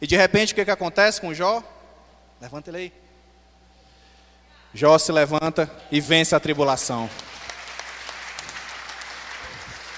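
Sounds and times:
speech: 0.0 - 1.8, 2.4 - 3.0, 4.7 - 7.4
audience applause: 7.1 - 9.9.

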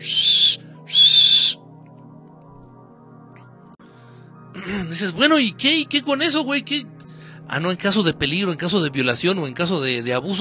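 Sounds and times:
voice imitating a safety whistle: 0.0 - 1.6
speech: 4.7 - 6.9, 7.5 - 10.3.

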